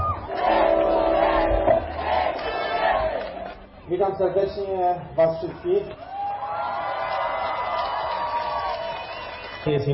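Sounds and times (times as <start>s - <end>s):
speedway fans in Gorzów cheering and applauding a world champion: 0.0s - 3.6s, 5.9s - 9.9s
speech: 4.0s - 6.1s, 9.6s - 9.9s.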